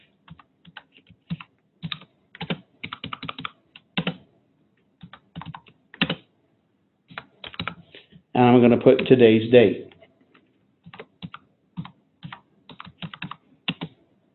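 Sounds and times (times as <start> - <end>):
fingers typing on a computer keyboard: 0.3 - 4.2, 5.0 - 6.3, 7.1 - 7.8, 10.8 - 14.0
speech: 8.4 - 9.9.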